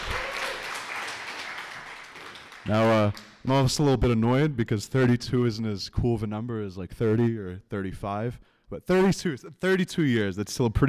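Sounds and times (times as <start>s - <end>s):
crowd applause: 0.0s - 3.4s
speech: 2.6s - 10.8s.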